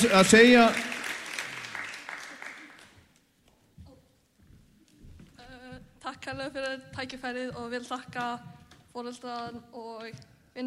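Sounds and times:
speech: 0.0s - 0.8s, 6.1s - 10.6s
audience applause at an awards occasion: 0.0s - 3.1s.

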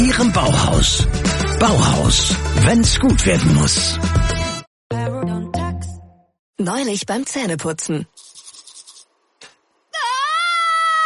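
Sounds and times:
speech: 0.2s - 4.4s, 6.6s - 8.2s
person screaming in pain: 9.9s - 11.0s.

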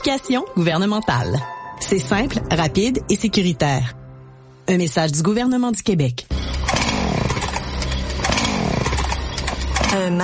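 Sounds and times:
speech: 0.0s - 4.0s, 4.7s - 6.3s, 9.9s - 10.2s
chainsaw running: 6.3s - 10.0s.

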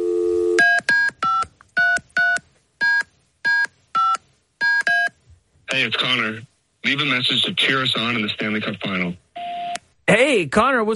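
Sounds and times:
electronic keypad beeps of a phone number being dialed: 0.6s - 5.2s
speech: 5.8s - 9.2s, 10.1s - 10.9s.

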